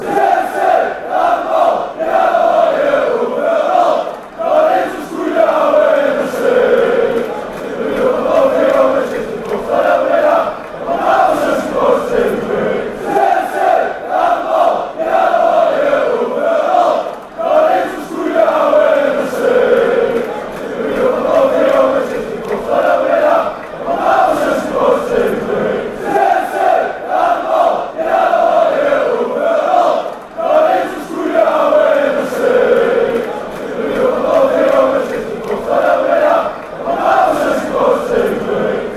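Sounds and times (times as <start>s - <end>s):
fans chanting: 0.0s - 38.9s.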